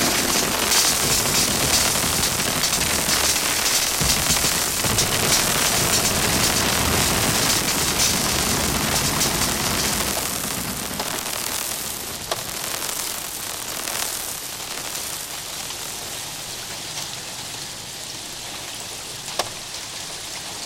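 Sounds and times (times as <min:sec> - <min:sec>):
noise electronic music: 0:00.0 - 0:16.0.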